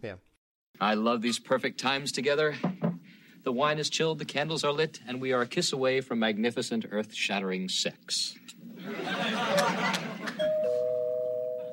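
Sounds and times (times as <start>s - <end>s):
speech: 0.0s - 2.8s, 3.4s - 10.4s
laughter: 8.8s - 10.5s
two-tone doorbell chime: 10.4s - 11.7s.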